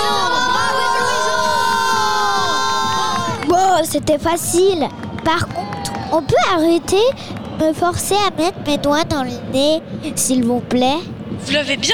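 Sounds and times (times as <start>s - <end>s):
large crowd cheering and shouting: 0.0s - 9.8s
audience applause: 3.0s - 7.7s
speech: 3.9s - 11.9s.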